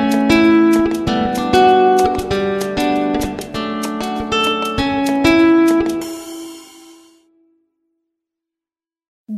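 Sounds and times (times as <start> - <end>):
Afrobeat instrumental: 0.0 - 7.2.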